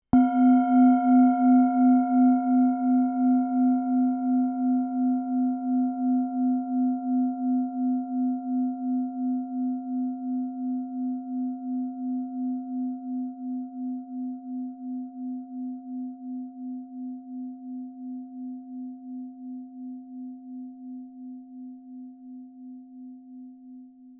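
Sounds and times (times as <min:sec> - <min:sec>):
singing bowl: 0:00.1 - 0:24.1.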